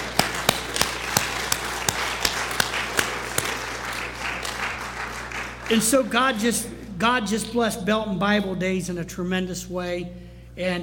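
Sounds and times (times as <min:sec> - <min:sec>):
sharp evenly spaced claps: 0:00.0 - 0:05.8
audience applause: 0:00.0 - 0:05.9
speech: 0:05.7 - 0:10.8.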